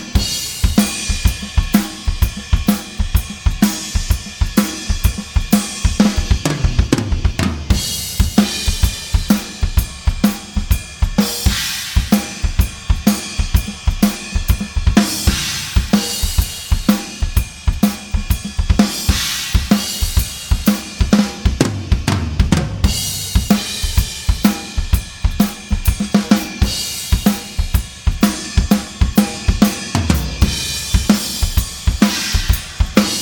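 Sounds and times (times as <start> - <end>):
drum solo recorded with overhead microphones: 0.0 - 33.2.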